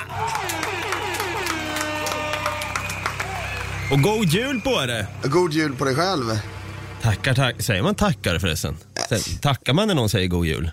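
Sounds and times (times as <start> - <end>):
crowd cheering and whooping: 0.0 - 5.2
crowd applauding: 0.0 - 6.9
speech: 3.9 - 10.7.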